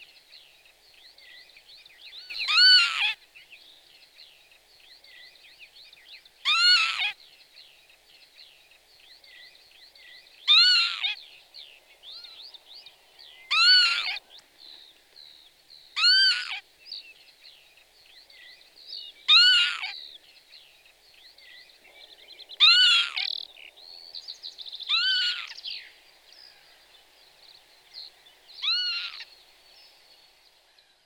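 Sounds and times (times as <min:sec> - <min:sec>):
small birds calling faintly: 0:00.0 - 0:30.0
Northern lapwing calls: 0:02.3 - 0:03.2, 0:06.4 - 0:07.2, 0:10.5 - 0:11.2, 0:13.5 - 0:14.2, 0:16.0 - 0:16.6, 0:19.3 - 0:20.0, 0:22.6 - 0:23.4, 0:24.9 - 0:25.6, 0:28.6 - 0:29.3.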